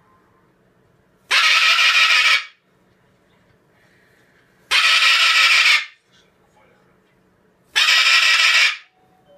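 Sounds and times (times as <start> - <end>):
Moluccan cockatoo playing: 1.3 - 2.6, 4.7 - 6.0, 7.7 - 9.0.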